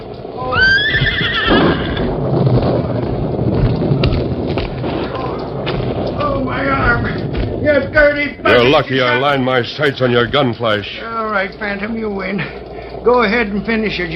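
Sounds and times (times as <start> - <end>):
steady rumbling noise: 0.0 - 14.1
Silver, the Lone Ranger's horse, whinnying: 0.4 - 2.1
scattered thuds: 1.5 - 8.3
speech: 8.6 - 14.1.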